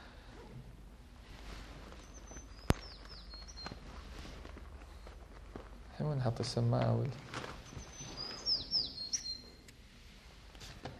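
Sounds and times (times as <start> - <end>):
quiet hiss: 0.0 - 10.9
sparrow chirping: 2.0 - 3.8, 7.7 - 9.6
speech: 6.1 - 7.4.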